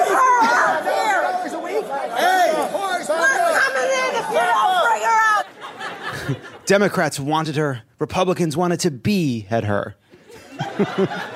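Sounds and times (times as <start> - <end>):
crowd screaming at the Capitol: 0.0 - 6.2
laughter: 0.0 - 7.0, 10.1 - 11.3
speech: 6.3 - 11.3.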